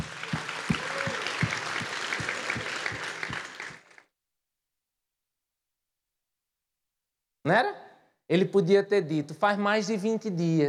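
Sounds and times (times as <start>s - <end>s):
audience applause: 0.0s - 4.0s
speech: 7.5s - 10.6s.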